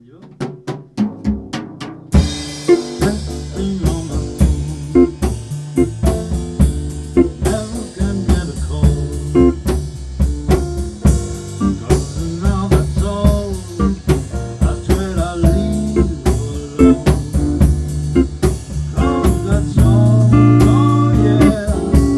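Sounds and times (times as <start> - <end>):
mambo music with drums: 0.0 - 22.1.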